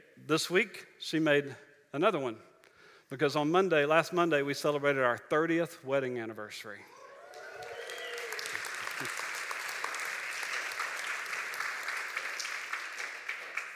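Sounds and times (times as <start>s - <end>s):
speech: 0.3s - 2.5s, 3.1s - 7.0s
crowd applauding: 6.9s - 13.7s.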